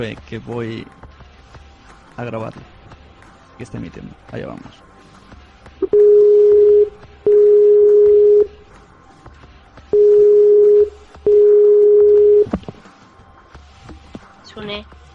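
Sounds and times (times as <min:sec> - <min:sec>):
speech: 0:00.0 - 0:01.0, 0:02.2 - 0:02.8, 0:03.6 - 0:04.9
telephone ringback tone while placing a call: 0:05.8 - 0:08.6, 0:10.0 - 0:12.5.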